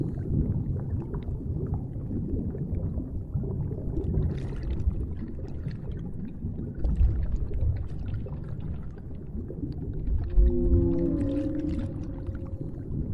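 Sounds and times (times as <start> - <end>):
whale sounds underwater in the deep sea: 0.0 - 13.1.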